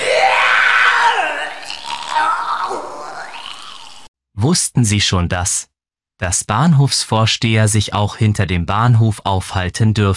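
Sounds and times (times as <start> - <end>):
person vomiting: 0.0 - 4.1
speech: 4.4 - 10.1.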